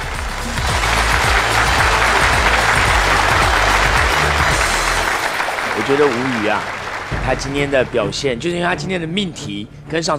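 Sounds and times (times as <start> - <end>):
crowd applause: 0.0 - 8.6
speech: 5.9 - 10.1.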